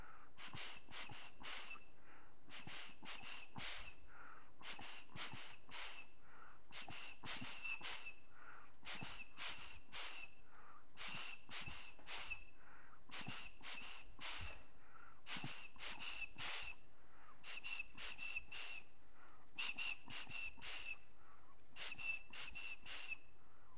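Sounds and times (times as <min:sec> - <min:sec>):
bone quena flute: 0:00.4 - 0:01.8, 0:02.5 - 0:04.0, 0:04.6 - 0:06.1, 0:06.7 - 0:08.2, 0:08.8 - 0:10.3, 0:11.0 - 0:12.5, 0:13.1 - 0:14.7, 0:15.3 - 0:16.8, 0:17.4 - 0:18.9, 0:19.6 - 0:21.0, 0:21.8 - 0:23.3.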